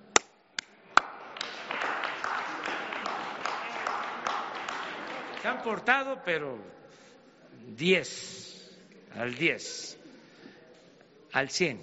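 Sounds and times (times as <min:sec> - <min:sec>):
sharp claps: 0:00.1 - 0:05.9
crowd applause: 0:01.0 - 0:05.9
speech: 0:05.4 - 0:06.8, 0:07.6 - 0:08.4, 0:09.2 - 0:10.0, 0:11.3 - 0:11.8.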